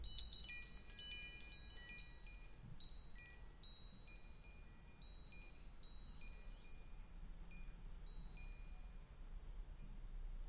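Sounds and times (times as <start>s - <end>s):
wind chimes: 0.0s - 10.2s.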